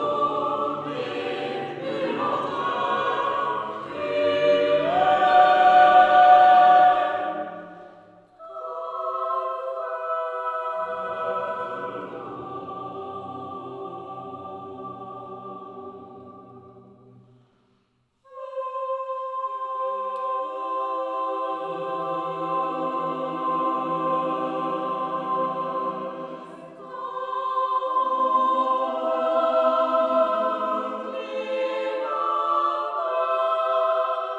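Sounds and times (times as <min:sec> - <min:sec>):
four-voice SATB mixed choir singing live in a Romanesque church: 0:00.0 - 0:17.5, 0:18.3 - 0:34.3.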